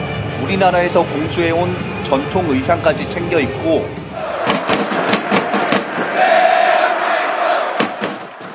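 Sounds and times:
speech: 0.4s - 4.0s
stadium supporters chanting in unison: 4.0s - 8.5s
rhythmic sharp claps or drum thumps: 4.4s - 6.5s, 7.7s - 8.5s.

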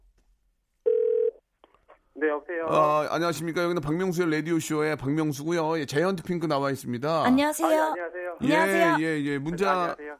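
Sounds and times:
telephone tone: 0.9s - 1.4s
speech: 2.2s - 10.1s.

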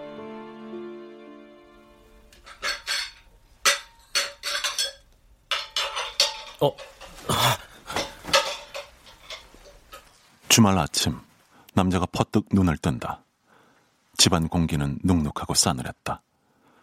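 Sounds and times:
dishes clattering in the kitchen: 2.3s - 10.2s
speech: 6.6s - 6.9s, 10.6s - 13.3s, 14.2s - 16.3s.

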